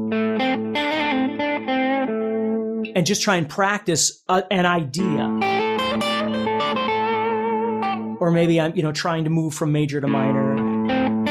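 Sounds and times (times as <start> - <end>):
electric guitar with distortion and effects around the note A: 0.0 - 3.0, 5.0 - 8.2, 10.1 - 11.2
speech: 3.0 - 5.5, 8.2 - 10.4.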